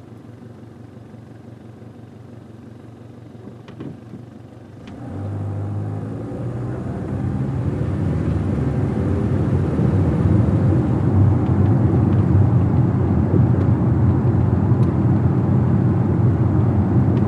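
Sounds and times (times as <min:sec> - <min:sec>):
sedan engine accelerating: 0:04.8 - 0:17.2.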